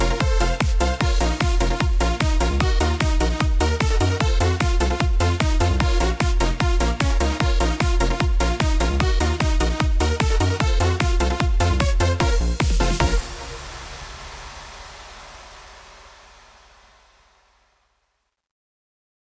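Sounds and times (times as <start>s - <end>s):
Yamaha keyboard accompaniment style: 0.0s - 13.2s.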